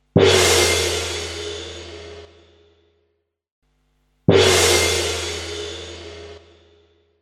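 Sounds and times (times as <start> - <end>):
gong: 0.2 - 2.6, 4.3 - 6.6.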